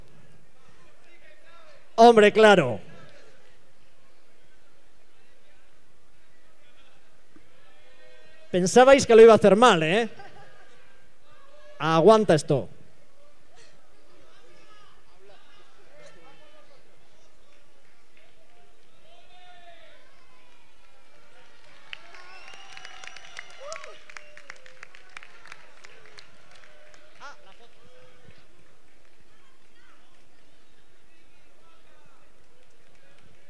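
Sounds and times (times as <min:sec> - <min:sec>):
speech: 0:02.0 - 0:02.9, 0:08.5 - 0:10.2, 0:11.8 - 0:12.8
laughter: 0:09.9 - 0:11.1
audience applause: 0:20.0 - 0:30.5.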